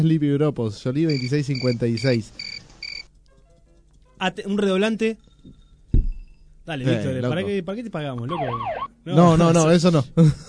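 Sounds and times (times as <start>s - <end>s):
speech: 0.0s - 2.5s, 4.2s - 5.6s, 6.7s - 10.4s
cricket chirping: 1.1s - 3.0s.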